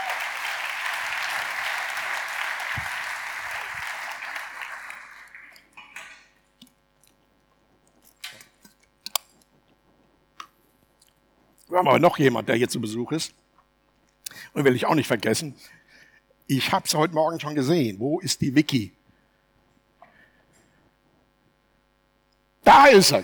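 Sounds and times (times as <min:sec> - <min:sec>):
audience applause: 0:00.0 - 0:06.3
small clicks: 0:08.0 - 0:09.5
speech: 0:11.8 - 0:13.4, 0:14.6 - 0:15.8, 0:16.5 - 0:19.0, 0:22.7 - 0:23.2.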